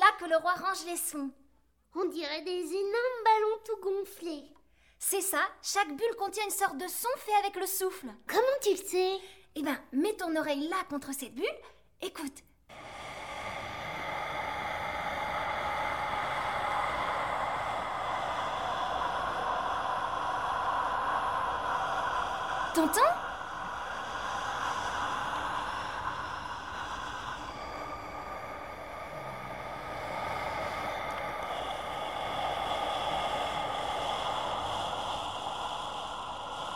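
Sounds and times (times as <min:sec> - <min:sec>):
speech: 0:00.2 - 0:12.8, 0:22.8 - 0:23.2
calm steady wind blowing: 0:12.7 - 0:36.7.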